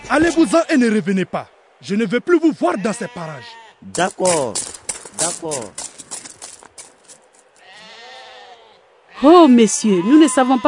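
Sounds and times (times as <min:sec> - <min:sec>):
speech: 0:00.1 - 0:05.8, 0:09.2 - 0:10.6
herd of livestock bleating while being led to water: 0:02.6 - 0:03.9, 0:07.6 - 0:10.6.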